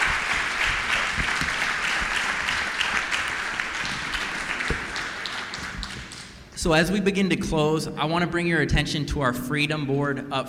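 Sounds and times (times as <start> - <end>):
audience applause for speakers after a panel discussion: 0.0 - 6.3
speech: 6.6 - 10.4.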